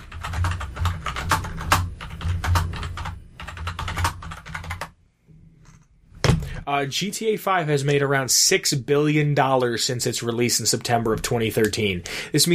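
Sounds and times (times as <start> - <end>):
typing on a computer keyboard for a Google search: 0.0 - 4.9
speech: 6.7 - 12.5.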